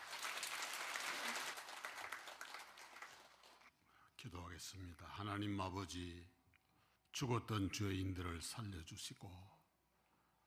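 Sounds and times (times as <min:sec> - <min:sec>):
audience applauding: 0:00.0 - 0:03.7
speech: 0:04.2 - 0:06.4, 0:07.2 - 0:09.6.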